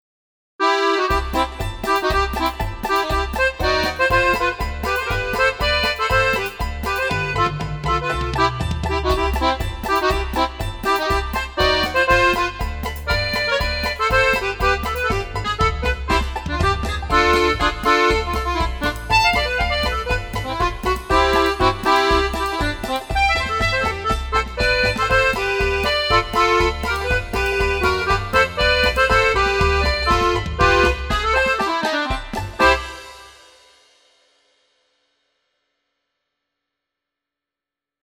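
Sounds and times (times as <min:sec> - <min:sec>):
polka music: 0:00.6 - 0:33.5.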